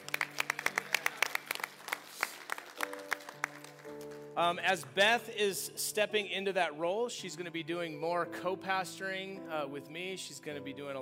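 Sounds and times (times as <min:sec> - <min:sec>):
audience clapping: 0:00.0 - 0:05.2
speech: 0:04.4 - 0:11.0.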